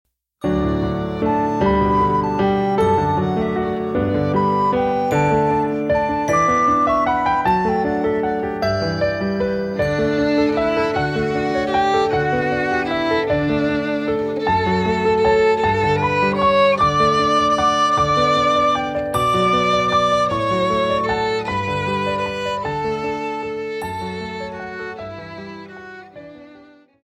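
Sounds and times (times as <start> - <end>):
instrumental music: 0.4 - 27.0.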